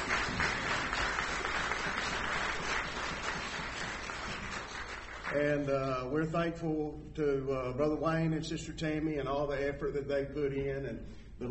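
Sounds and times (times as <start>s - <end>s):
audience applause: 0.0s - 5.3s
speech: 5.3s - 11.4s.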